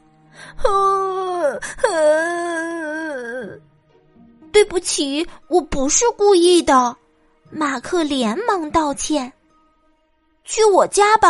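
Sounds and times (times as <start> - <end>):
speech: 0.5 - 0.8, 4.6 - 9.4, 10.5 - 11.2
girl crying after falling and bleeding: 0.6 - 3.6.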